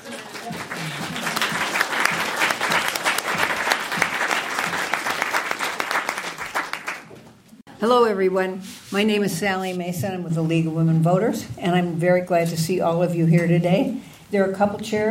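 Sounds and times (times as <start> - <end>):
audience applause: 0.0 - 7.2
speech: 7.8 - 15.0.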